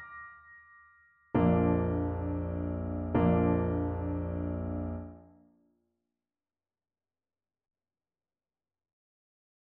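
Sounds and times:
piano miniature: 0:01.3 - 0:05.3.

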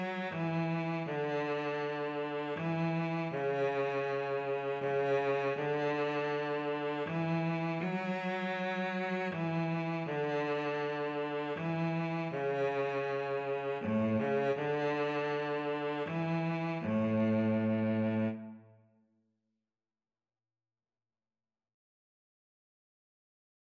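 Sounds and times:
violin and cello duet: 0:00.0 - 0:18.7.

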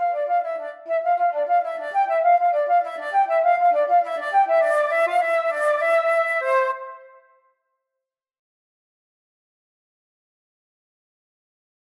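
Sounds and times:
flute duet: 0:00.0 - 0:07.4.

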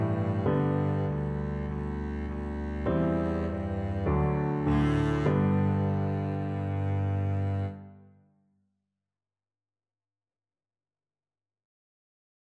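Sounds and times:
double bass: 0:00.0 - 0:07.8.

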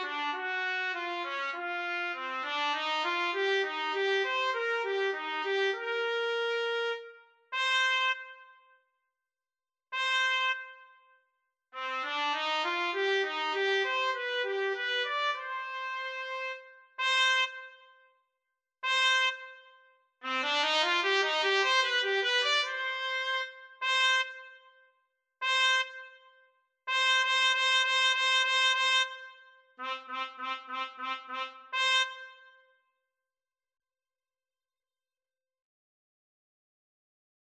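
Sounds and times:
trumpet and saxophone duet: 0:00.0 - 0:08.5, 0:10.0 - 0:10.9, 0:11.8 - 0:17.8, 0:18.8 - 0:19.6, 0:20.2 - 0:24.6, 0:25.4 - 0:26.2, 0:26.9 - 0:32.6.

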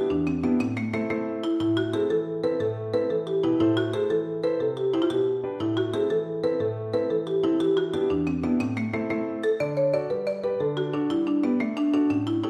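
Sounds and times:
marimba playing an Irish jig medley: 0:00.0 - 0:12.4
percussion: 0:00.0 - 0:12.4.

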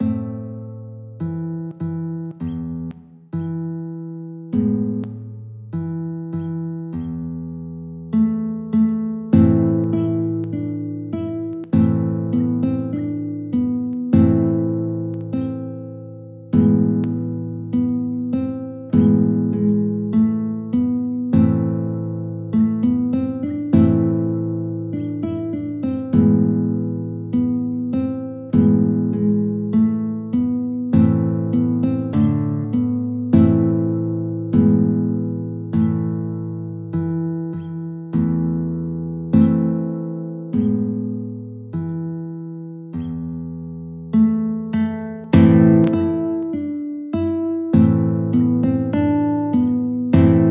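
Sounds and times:
guitar: 0:00.0 - 0:50.4.

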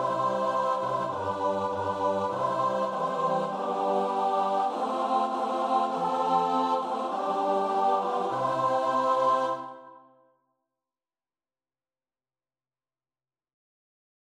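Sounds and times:
choir singing: 0:00.0 - 0:10.2.

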